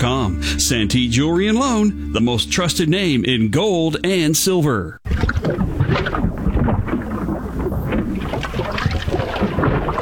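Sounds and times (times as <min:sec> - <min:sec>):
speech: 0:00.0 - 0:05.3
clogged drain gurgling: 0:05.0 - 0:10.0.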